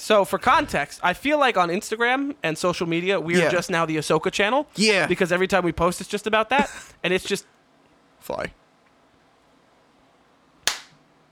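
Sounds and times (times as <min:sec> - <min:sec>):
speech: 0:00.0 - 0:07.6, 0:08.2 - 0:08.6
hand clap: 0:10.6 - 0:11.0.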